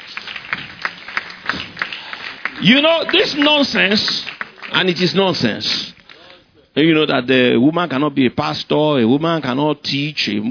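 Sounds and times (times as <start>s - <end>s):
church congregation clapping in unison: 0.0s - 6.4s
speech: 2.6s - 5.9s, 6.8s - 10.4s.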